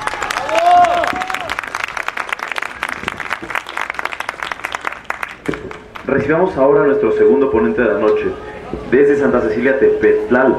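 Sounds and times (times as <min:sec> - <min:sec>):
audience applause: 0:00.0 - 0:06.1
speech: 0:06.1 - 0:10.5.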